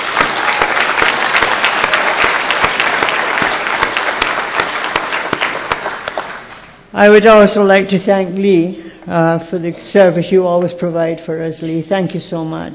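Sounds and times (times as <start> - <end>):
audience applause: 0.0 - 6.7
speech: 7.0 - 12.7.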